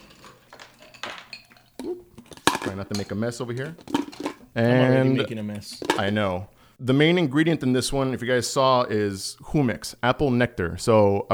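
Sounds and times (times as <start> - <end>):
ice dropping into a cocktail shaker: 0.0 - 6.6
speech: 1.8 - 2.1, 2.7 - 11.3.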